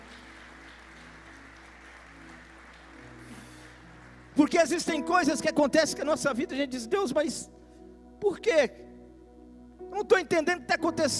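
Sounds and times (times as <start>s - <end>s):
crowd clapping: 0.0s - 5.2s
sustained keyboard chords: 0.0s - 11.1s
speech: 4.4s - 7.6s, 8.2s - 8.9s, 10.0s - 11.1s.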